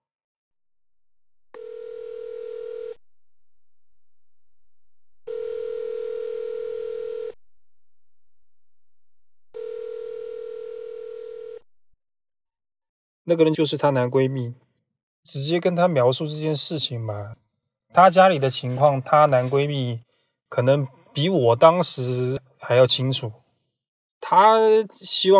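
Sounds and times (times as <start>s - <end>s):
telephone dialing tone: 1.6s - 3.0s, 5.3s - 7.4s, 9.6s - 11.6s
speech: 13.3s - 23.4s, 24.2s - 25.3s.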